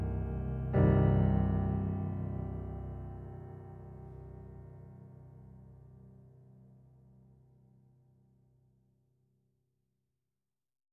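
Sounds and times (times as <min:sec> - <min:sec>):
piano: 0:00.0 - 0:07.4.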